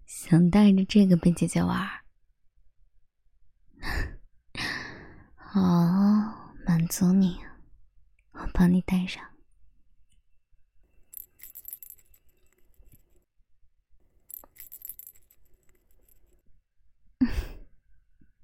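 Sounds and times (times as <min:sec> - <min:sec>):
speech: 0:00.3 - 0:02.0, 0:05.5 - 0:07.5, 0:08.4 - 0:09.3
small bell jingling: 0:11.0 - 0:13.2, 0:14.2 - 0:16.4.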